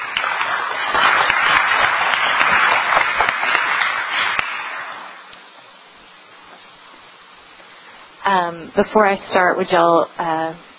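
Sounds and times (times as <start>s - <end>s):
audience clapping applause: 0.0s - 5.4s
speech: 8.7s - 10.7s.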